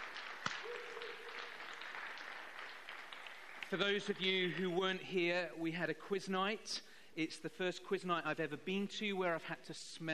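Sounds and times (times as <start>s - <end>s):
audience applause: 0.0s - 4.8s
speech: 3.7s - 10.1s.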